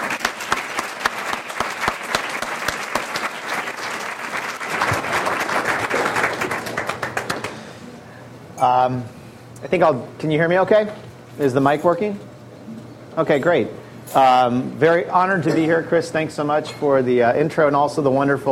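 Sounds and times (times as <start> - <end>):
audience applause welcoming a keynote speaker at a business conference at Baylor in Texas: 0.0 - 7.9
speech: 8.6 - 12.3, 13.2 - 18.5.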